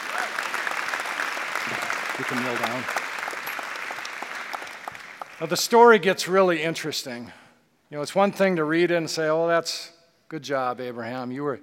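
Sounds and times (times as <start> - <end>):
audience applause: 0.0 - 5.7
speech: 2.2 - 3.1, 5.4 - 11.6.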